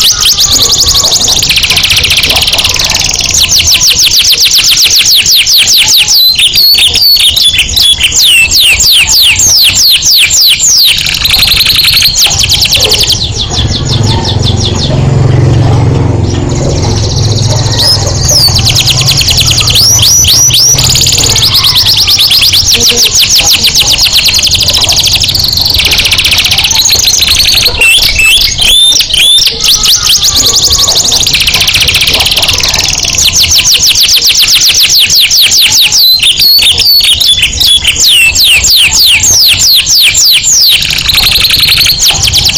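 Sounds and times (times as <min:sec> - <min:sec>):
canary singing trills: 0:00.0 - 0:42.5
low rumbling hum: 0:13.3 - 0:21.6.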